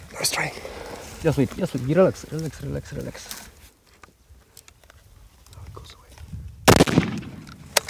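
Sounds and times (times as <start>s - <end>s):
speech: 0.2s - 3.4s
gunshot fired at an animal during a hunt: 6.7s - 7.7s.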